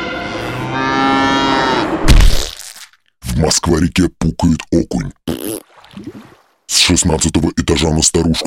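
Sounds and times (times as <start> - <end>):
cow mooing: 0.2 - 2.0
speech: 3.7 - 8.4.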